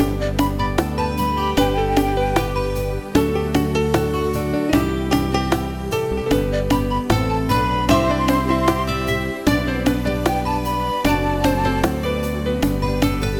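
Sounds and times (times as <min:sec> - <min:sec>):
bongos: 0:00.0 - 0:13.3.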